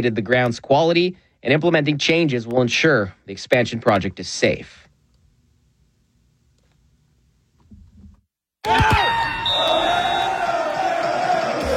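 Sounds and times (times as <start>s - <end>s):
speech: 0.0s - 4.8s, 8.6s - 9.1s
crowd cheering in a bar: 8.6s - 11.7s.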